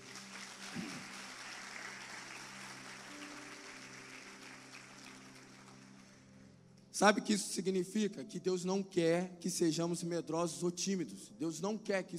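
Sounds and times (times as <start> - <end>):
clapping: 0.0 - 6.2
speech: 7.0 - 12.1.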